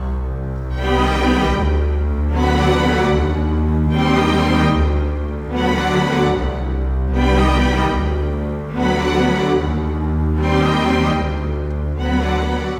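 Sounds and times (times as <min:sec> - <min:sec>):
cinematic orchestral strings: 0:00.0 - 0:12.7.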